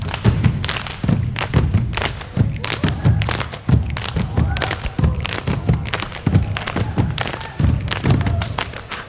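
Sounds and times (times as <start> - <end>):
dancers floor stomping: 0.0 - 8.9
dancers crying out: 4.2 - 8.6.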